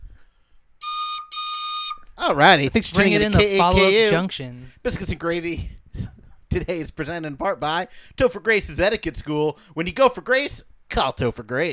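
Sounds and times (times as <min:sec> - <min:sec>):
train whistle sound effect: 0:00.8 - 0:02.2
speech: 0:02.2 - 0:11.7.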